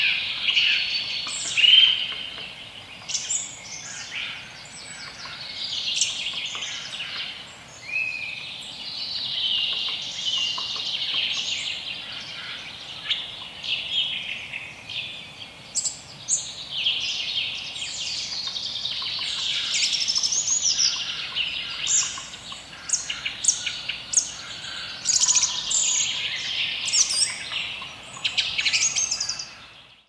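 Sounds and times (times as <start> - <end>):
spring morning forest ambience in Poland: 0.0 - 30.0.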